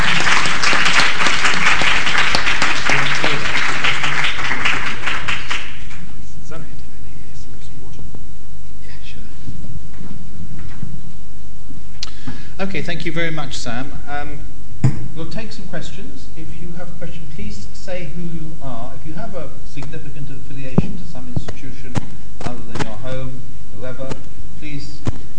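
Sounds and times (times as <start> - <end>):
audience clapping: 0.0 - 6.2
speech: 12.8 - 25.3.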